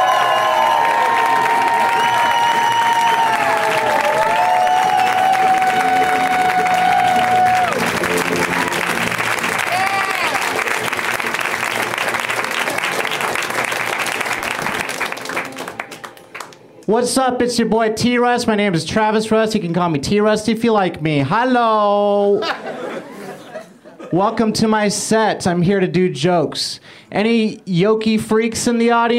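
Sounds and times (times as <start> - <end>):
audience cheering welcoming a comedian: 0.0 - 16.3
speech: 17.0 - 22.6, 24.1 - 29.1
laughter: 22.2 - 24.3.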